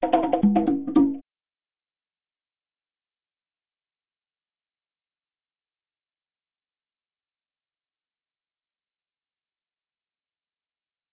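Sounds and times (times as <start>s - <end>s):
drums: 0.0s - 1.2s.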